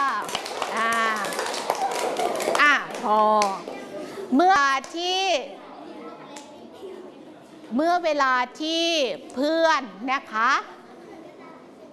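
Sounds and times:
children clapping for the winning team: 0.0 - 3.9
speech: 3.0 - 3.7, 4.3 - 5.6, 7.7 - 10.7.

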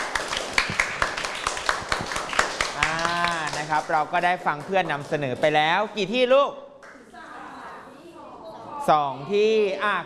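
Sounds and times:
classroom applause: 0.0 - 4.1
speech: 3.7 - 6.6, 8.8 - 10.0.

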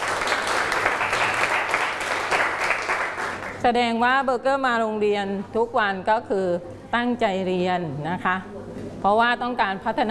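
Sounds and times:
classroom applause: 0.0 - 3.6
speech: 3.6 - 10.0.

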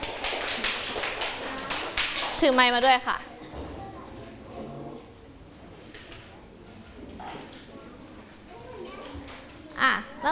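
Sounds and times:
students clapping: 0.0 - 3.2
speech: 2.4 - 3.3.

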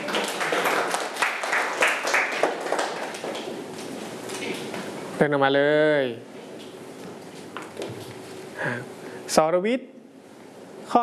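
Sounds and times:
students clapping in a classroom: 0.0 - 3.6
speech: 5.2 - 6.4, 8.6 - 9.9.

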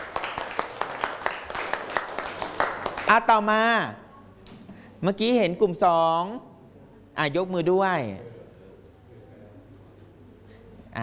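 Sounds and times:
children applauding a classmate: 0.0 - 3.1
speech: 3.1 - 4.0, 5.0 - 6.5, 7.2 - 8.4.

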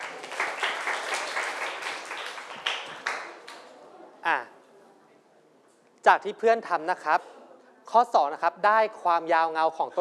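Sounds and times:
students applauding: 0.0 - 3.7
speech: 4.2 - 4.6, 6.0 - 7.3, 7.9 - 9.9.

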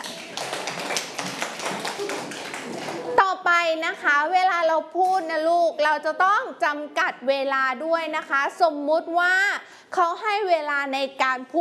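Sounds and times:
children clapping: 0.0 - 3.2
speech: 3.7 - 11.5.

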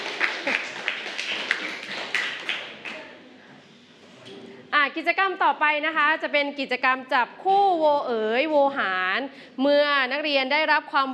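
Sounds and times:
classroom group clapping: 0.0 - 3.2
speech: 4.8 - 11.1.

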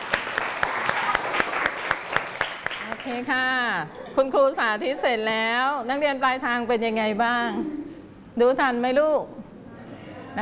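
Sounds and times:
children clapping for a classmate in class: 0.0 - 3.3
speech: 3.1 - 7.8, 8.4 - 9.4.

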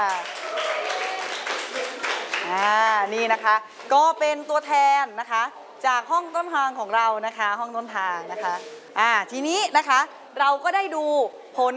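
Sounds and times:
classroom applause: 0.0 - 2.8
speech: 2.5 - 11.7.

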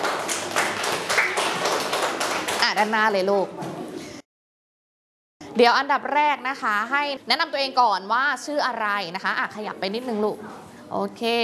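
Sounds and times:
students in a class clapping: 0.0 - 3.0
speech: 2.8 - 3.7, 5.6 - 11.4.

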